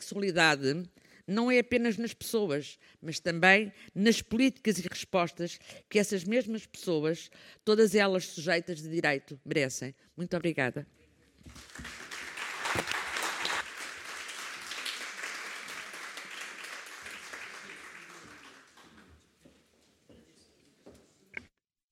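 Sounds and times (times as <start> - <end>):
speech: 0.1 - 12.0
audience applause: 11.5 - 19.2.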